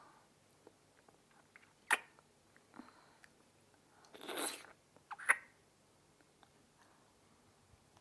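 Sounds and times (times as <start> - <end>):
married woman making oral sex sucking sounds: 1.6 - 2.2, 4.0 - 5.5.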